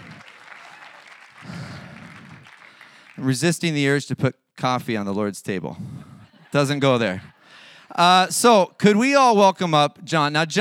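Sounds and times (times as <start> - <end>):
church congregation applauding for Team World Vision: 0.0 - 3.6
speech: 3.2 - 5.9, 6.5 - 7.3, 7.9 - 10.5.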